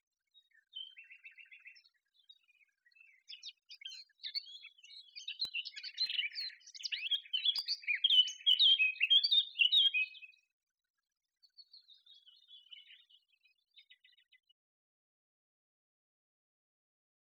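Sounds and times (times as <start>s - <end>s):
Eurasian blackcap song: 0.3s - 10.5s, 11.4s - 14.5s.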